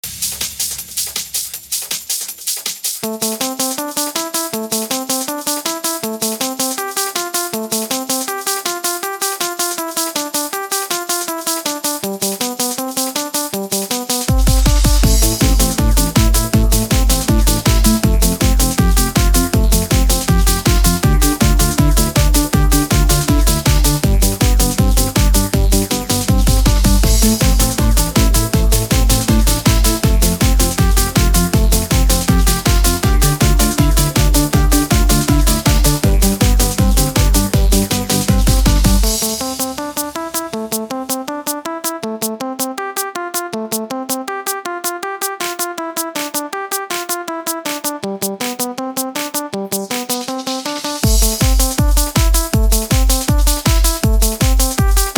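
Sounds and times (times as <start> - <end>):
1990s techno dance music: 0.0 - 55.1.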